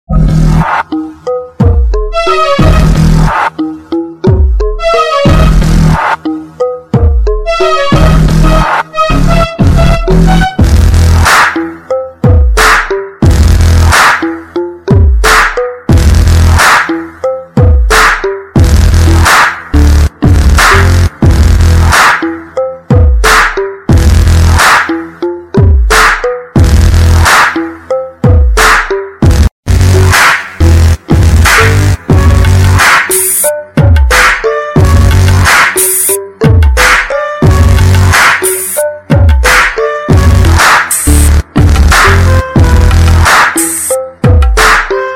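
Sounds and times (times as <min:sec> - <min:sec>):
bass: 0:00.0 - 0:45.0.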